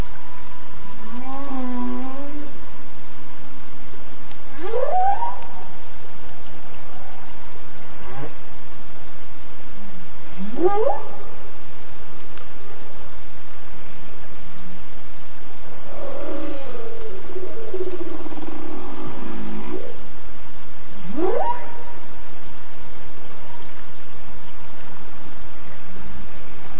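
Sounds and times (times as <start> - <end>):
humpback whale in Glacier Bay: 0.8 - 2.6, 4.5 - 5.8, 10.3 - 11.3, 15.7 - 20.2, 21.0 - 22.2.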